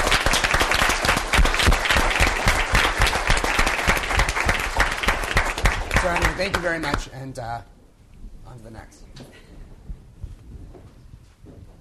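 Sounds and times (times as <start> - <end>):
audience applause: 0.0 - 7.1
speech: 6.1 - 7.7, 8.5 - 9.5.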